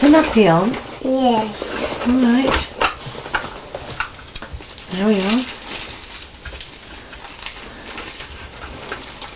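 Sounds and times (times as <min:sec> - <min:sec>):
speech: 0:00.0 - 0:02.8, 0:04.9 - 0:05.6
plastic waterproof nappy crackling: 0:00.0 - 0:09.3.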